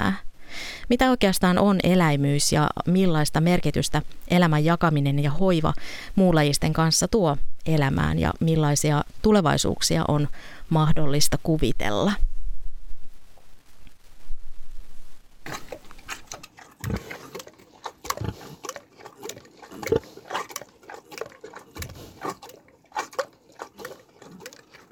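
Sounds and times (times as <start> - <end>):
speech: 0.9 - 12.3, 16.9 - 17.2
Paavo the animal munching on bread: 15.5 - 24.9.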